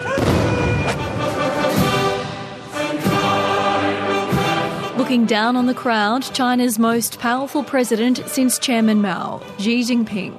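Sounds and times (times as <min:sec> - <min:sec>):
ceremonial gun salute firing: 0:00.1 - 0:01.3
brass band playing: 0:00.2 - 0:10.3
speech: 0:05.1 - 0:10.3.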